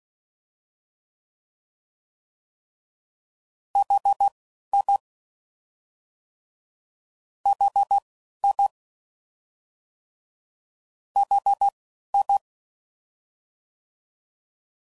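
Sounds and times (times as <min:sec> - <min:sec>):
CW Morse code groups: 0:03.8 - 0:05.0, 0:07.5 - 0:08.7, 0:11.2 - 0:12.4.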